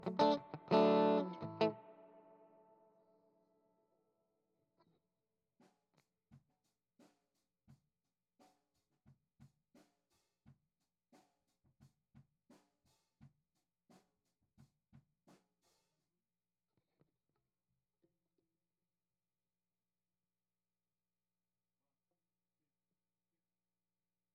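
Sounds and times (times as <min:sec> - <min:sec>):
guitar: 0:00.0 - 0:02.8.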